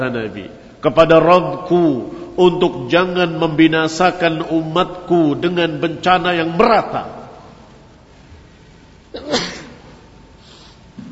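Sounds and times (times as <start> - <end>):
speech: 0.0 - 7.2
sneeze: 9.2 - 9.8.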